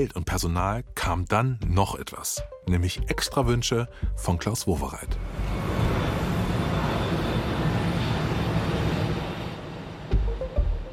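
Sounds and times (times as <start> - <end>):
speech: 0.0 - 5.9
Airbus A380 airliner: 5.0 - 10.9.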